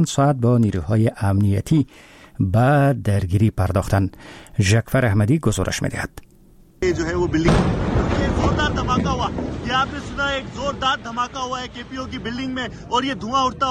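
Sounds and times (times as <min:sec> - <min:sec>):
speech: 0:00.0 - 0:13.6
reporter talking excitedly: 0:06.8 - 0:13.6
rumbling noise: 0:06.8 - 0:13.6
wind buffeting: 0:06.8 - 0:13.6
loud booming explosion: 0:06.9 - 0:13.6.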